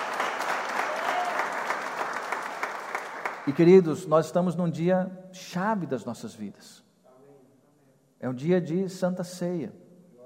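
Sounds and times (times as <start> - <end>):
audience applauding: 0.0 - 3.6
speech: 3.4 - 6.8, 8.2 - 9.8.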